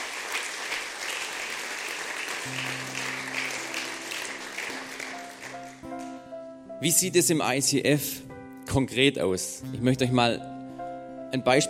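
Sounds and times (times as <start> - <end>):
crowd applause: 0.0 - 6.1
speech: 2.4 - 2.9, 6.8 - 10.5, 11.3 - 11.6.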